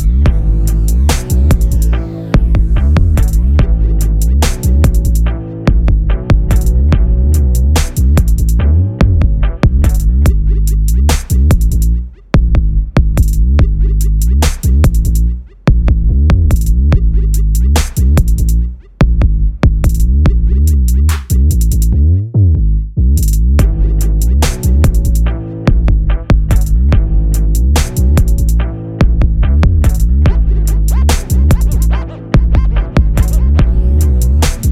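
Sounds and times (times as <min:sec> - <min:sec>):
instrumental beat: 0:00.0 - 0:34.7.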